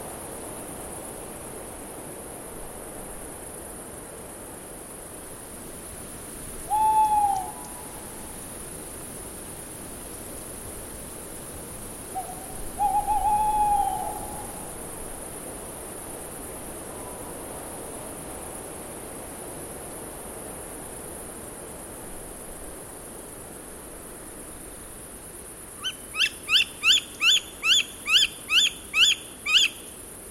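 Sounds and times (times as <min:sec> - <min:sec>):
tawny owl hooting: 0:06.7 - 0:08.1, 0:12.2 - 0:14.6, 0:25.8 - 0:29.8.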